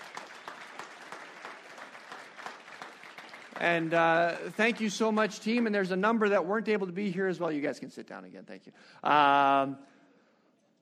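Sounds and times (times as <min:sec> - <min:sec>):
audience applause: 0:00.0 - 0:06.0
speech: 0:03.6 - 0:09.9.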